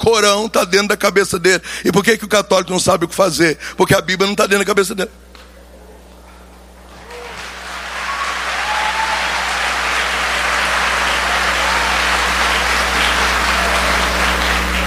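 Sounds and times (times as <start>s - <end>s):
speech: 0.0s - 5.3s
audience applause: 6.8s - 14.8s.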